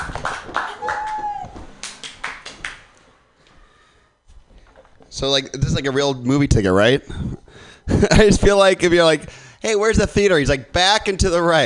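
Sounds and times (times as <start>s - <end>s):
comedy club audience clapping: 0.0s - 3.1s
speech: 5.2s - 11.6s.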